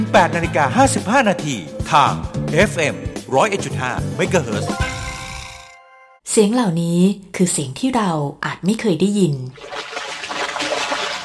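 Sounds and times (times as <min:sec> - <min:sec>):
speech: 0:00.0 - 0:04.9, 0:06.4 - 0:09.8
fish thrashing in water caught in a net: 0:09.6 - 0:11.2.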